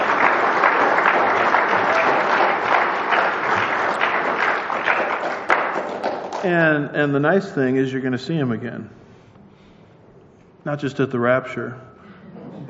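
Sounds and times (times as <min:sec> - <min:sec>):
audience applause: 0:00.0 - 0:06.6
speech: 0:06.4 - 0:09.0, 0:10.6 - 0:11.9.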